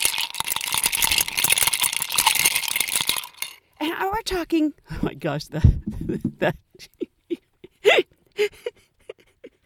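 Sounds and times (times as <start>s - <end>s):
ice cubes clinking as a drink is stirred: 0.0s - 3.7s
person talking excitedly: 3.8s - 6.6s
speech: 4.0s - 7.0s, 8.4s - 8.7s.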